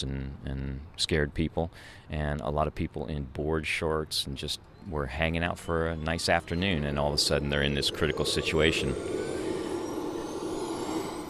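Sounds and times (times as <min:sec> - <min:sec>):
speech: 0:00.0 - 0:09.4
Chinook helicopter starting its engines: 0:05.6 - 0:11.2.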